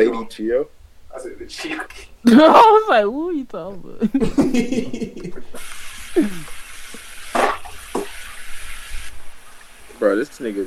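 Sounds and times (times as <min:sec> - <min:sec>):
speech: 0:00.0 - 0:06.6, 0:10.0 - 0:10.6
laughter: 0:04.0 - 0:05.6
tap water running: 0:05.5 - 0:10.6.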